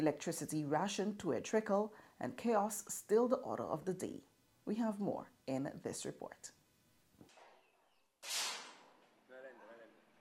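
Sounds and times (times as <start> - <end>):
speech: 0.0 - 6.6
gunshot at a recreational shooting range in Havana Park: 7.3 - 9.1.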